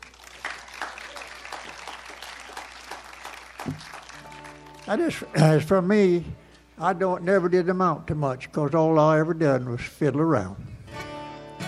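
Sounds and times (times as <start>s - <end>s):
audience applause welcoming a musician: 0.0s - 5.5s
speech: 3.7s - 4.0s, 4.9s - 10.7s.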